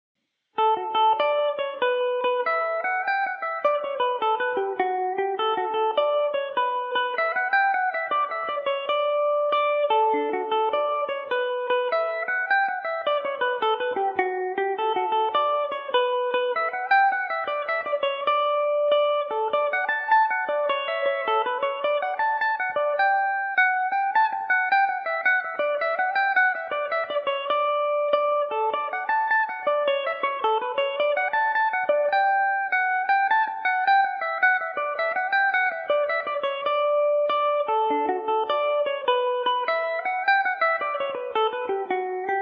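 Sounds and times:
mandolin tune in D major: 0.6s - 42.4s.

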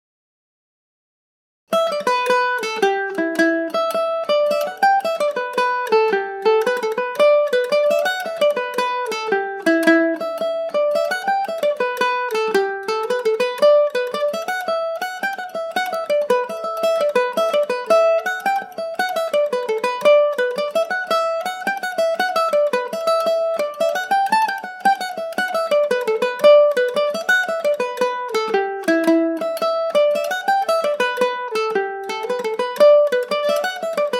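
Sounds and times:
Irish mandolin playing a jig in E dorian: 1.7s - 34.1s.

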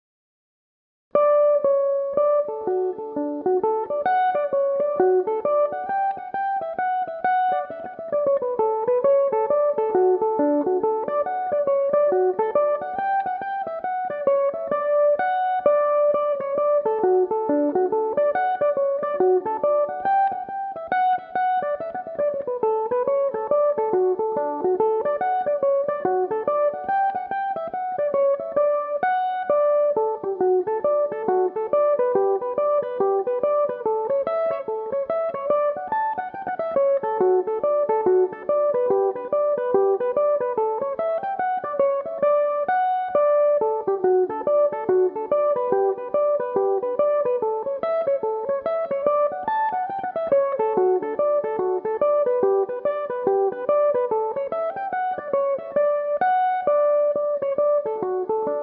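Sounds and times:
Irish mandolin playing in D major: 1.5s - 58.6s.

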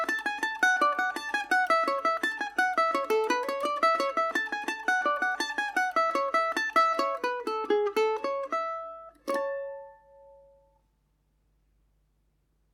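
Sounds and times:
jig in A major on a Paris Swing Macaferri mandolin: 0.0s - 10.8s.

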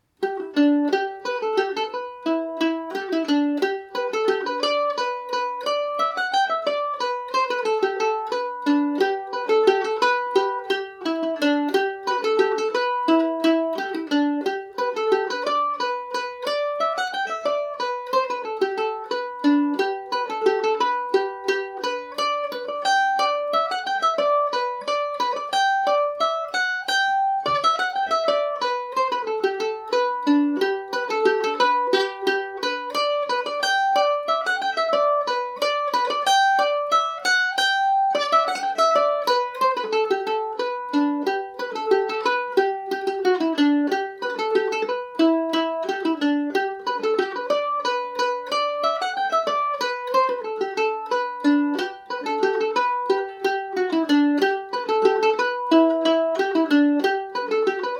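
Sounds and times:
Irish mandolin in G major: 0.0s - 57.9s.

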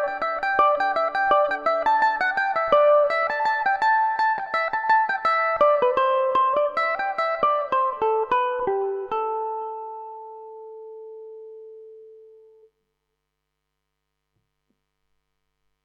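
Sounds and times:
Irish mandolin playing a reel in A dorian: 0.0s - 11.4s.

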